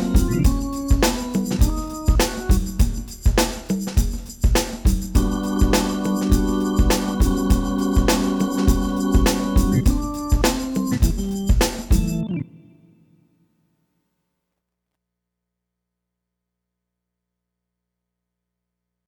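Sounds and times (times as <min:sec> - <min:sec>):
Motown groove etude without bass: 0:00.0 - 0:12.5.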